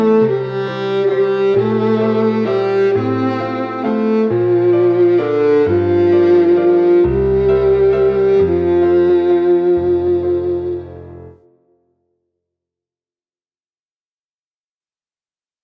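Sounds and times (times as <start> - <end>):
viola: 0.0 - 11.6.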